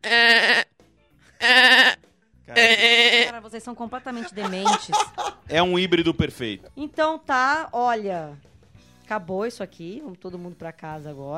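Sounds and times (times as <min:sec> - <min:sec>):
person imitating a goat with bleats: 0:00.0 - 0:00.6, 0:01.4 - 0:02.0, 0:02.6 - 0:03.3
speech: 0:03.5 - 0:08.5, 0:09.1 - 0:11.3
laughter: 0:03.9 - 0:05.9.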